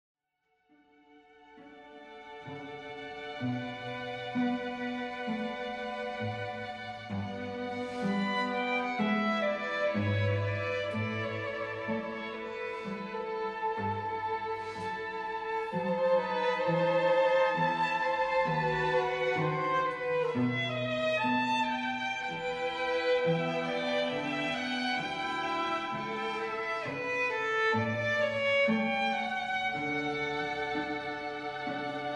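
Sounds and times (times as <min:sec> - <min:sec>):
strings playing a processional: 0:01.2 - 0:32.1.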